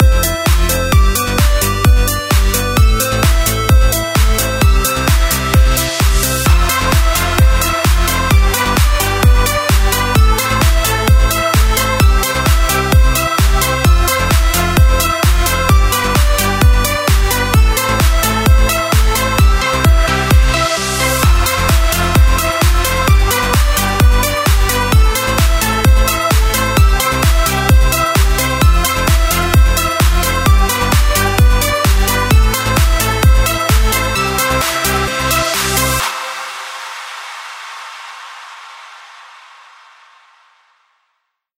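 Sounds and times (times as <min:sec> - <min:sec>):
party music: 0:00.0 - 0:37.5.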